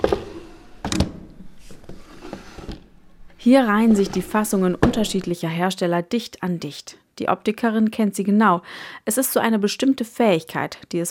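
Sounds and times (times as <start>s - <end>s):
wooden drawers being pulled out: 0.0s - 5.4s
speech: 3.4s - 11.1s.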